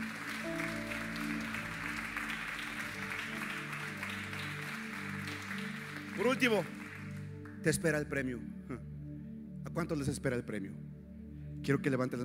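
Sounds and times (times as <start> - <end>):
audience clapping: 0.0 - 7.8
sustained keyboard chords: 0.0 - 9.7
speech: 6.2 - 6.8, 7.6 - 8.9, 9.8 - 10.9, 11.6 - 12.2.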